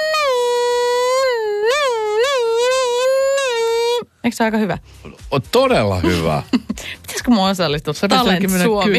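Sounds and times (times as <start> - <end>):
voice imitating a formula racing car: 0.1 - 4.0
speech: 4.3 - 8.9.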